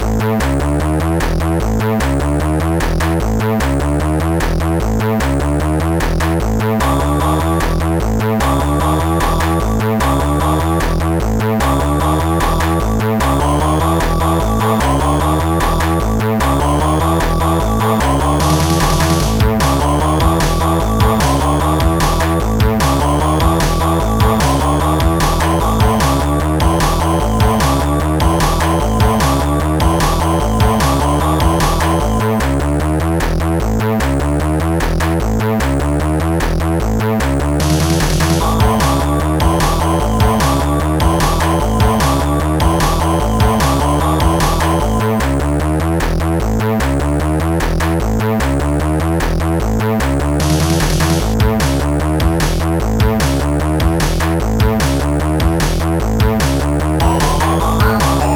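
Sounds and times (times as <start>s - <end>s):
funky bass: 0.0s - 58.3s.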